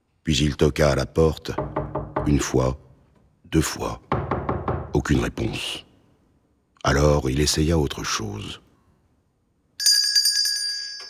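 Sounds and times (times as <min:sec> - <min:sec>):
speech: 0:00.2 - 0:02.8, 0:03.5 - 0:04.1, 0:05.0 - 0:05.9, 0:06.8 - 0:08.6
small door bell ringing: 0:09.8 - 0:11.0.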